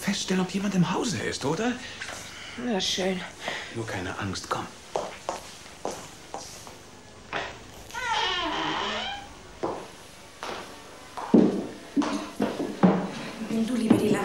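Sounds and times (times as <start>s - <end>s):
speech: 0.1s - 4.8s
footsteps on creaking wooden stairs: 5.0s - 14.2s.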